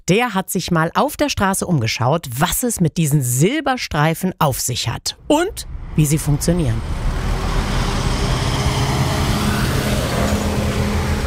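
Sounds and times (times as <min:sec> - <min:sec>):
speech: 0:00.1 - 0:07.0
cars on busy street: 0:05.2 - 0:11.2.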